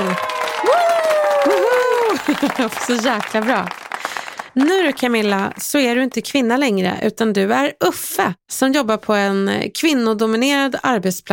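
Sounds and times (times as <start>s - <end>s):
voices whooping and cheering: 0.0s - 3.0s
audience clapping: 0.0s - 5.7s
laughter: 1.4s - 3.2s
speech: 2.4s - 3.8s, 4.6s - 11.3s.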